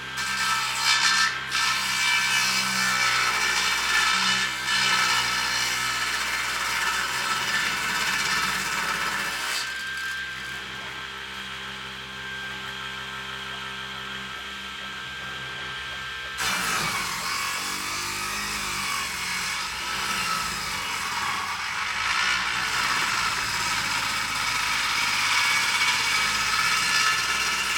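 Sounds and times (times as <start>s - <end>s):
saw running strongly and continuously indoors: 0.1s - 27.7s.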